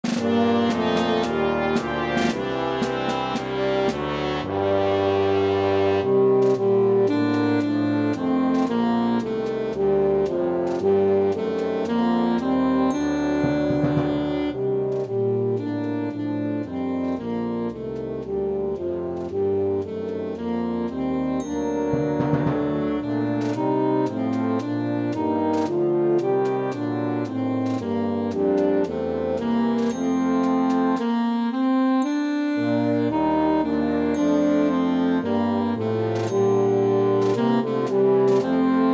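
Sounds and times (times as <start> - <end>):
saxophone melody: 0.0 - 38.9.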